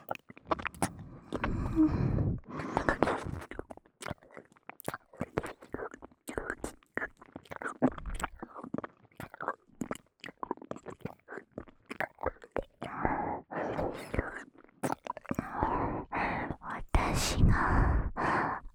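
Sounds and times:
left ear licking: 0:00.0 - 0:18.7
person whispering: 0:01.4 - 0:03.5, 0:13.4 - 0:14.4, 0:15.4 - 0:18.7.

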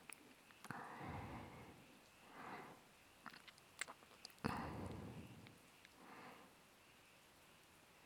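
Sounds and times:
person breathing softly while lying beside the listener: 0:00.7 - 0:02.9, 0:04.4 - 0:06.6.

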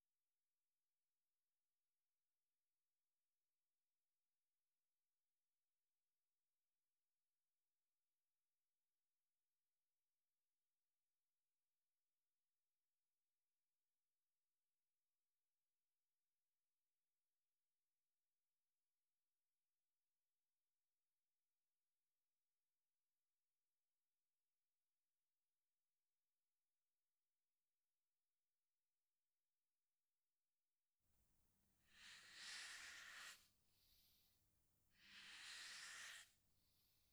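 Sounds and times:
ASMR skinship sounds: 0:32.0 - 0:33.4, 0:35.0 - 0:36.3.

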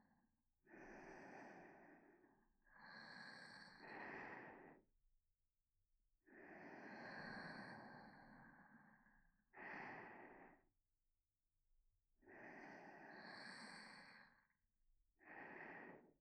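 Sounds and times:
sleeping breathing in both ears: 0:00.7 - 0:04.8, 0:06.3 - 0:10.6, 0:12.2 - 0:14.4, 0:15.2 - 0:16.1.

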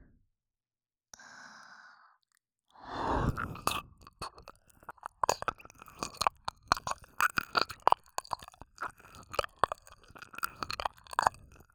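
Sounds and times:
ASMR ear licking sounds: 0:03.0 - 0:11.7.

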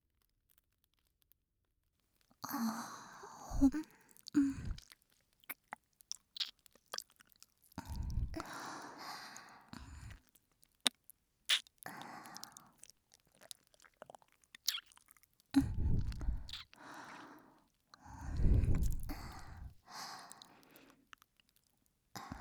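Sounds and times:
licking both ears in ASMR: 0:03.6 - 0:08.6, 0:10.8 - 0:17.2, 0:18.3 - 0:21.3.

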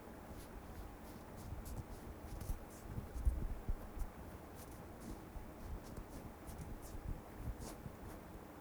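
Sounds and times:
cotton swab with natural baby oil cleaning right ear: 0:00.2 - 0:08.4.

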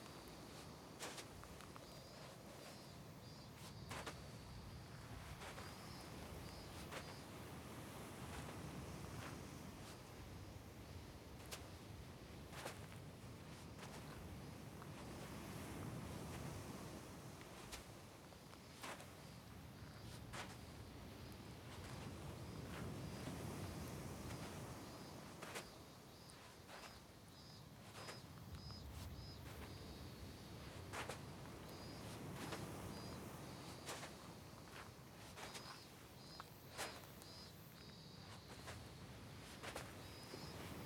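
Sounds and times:
beach ambience: 0:00.0 - 0:40.8.

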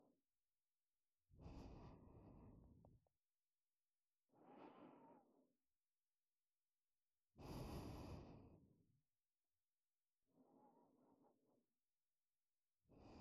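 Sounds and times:
breathing in ASMR on the right side: 0:01.4 - 0:03.0, 0:04.4 - 0:05.4, 0:07.4 - 0:08.7, 0:12.9 - 0:13.1.

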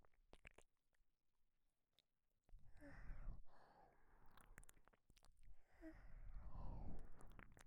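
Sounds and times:
breathing with voice leaking in the left ear on a KU100: 0:02.7 - 0:04.2, 0:05.7 - 0:07.0.

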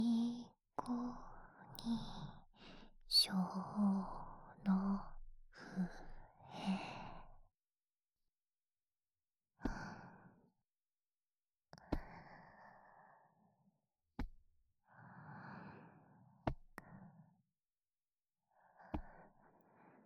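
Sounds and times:
lullaby: 0:00.0 - 0:07.2.

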